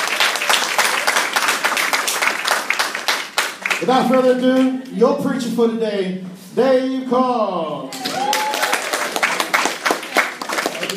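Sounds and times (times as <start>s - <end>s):
audience applause: 0.0s - 3.9s, 7.9s - 10.9s
speech: 3.8s - 8.0s.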